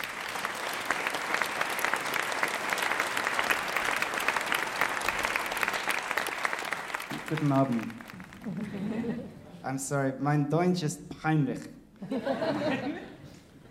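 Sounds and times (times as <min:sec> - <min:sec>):
audience applause: 0:00.0 - 0:09.2
speech: 0:07.3 - 0:13.1
laughter: 0:08.4 - 0:09.6, 0:12.0 - 0:13.6.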